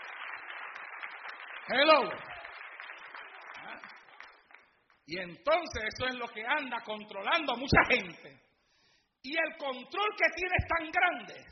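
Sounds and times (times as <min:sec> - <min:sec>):
audience clapping: 0:00.0 - 0:05.2
speech: 0:01.7 - 0:02.3, 0:05.1 - 0:08.5, 0:09.2 - 0:11.4.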